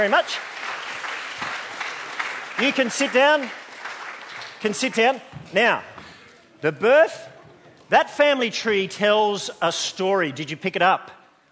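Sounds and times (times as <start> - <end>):
speech: 0.0 - 0.6, 2.6 - 3.6, 4.6 - 5.9, 6.6 - 7.3, 7.9 - 11.2
audience applause: 0.0 - 5.2.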